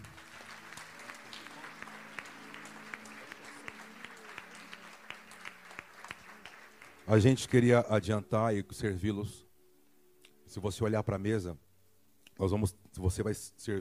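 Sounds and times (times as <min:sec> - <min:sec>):
audience applause: 0:00.0 - 0:07.8
speech: 0:07.1 - 0:09.4, 0:10.6 - 0:11.6, 0:12.4 - 0:13.7.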